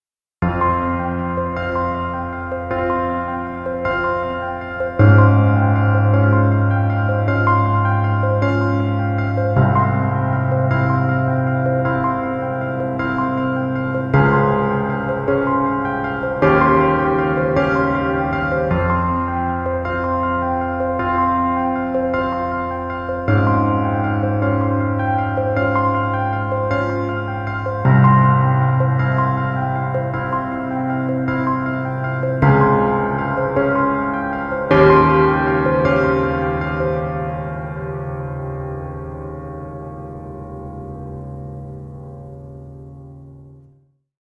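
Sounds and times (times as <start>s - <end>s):
piano: 0.4s - 44.1s.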